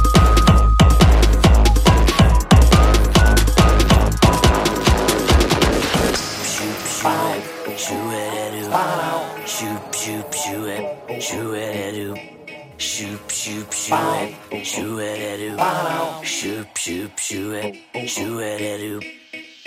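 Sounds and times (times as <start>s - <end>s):
cold beat: 0.0s - 14.5s.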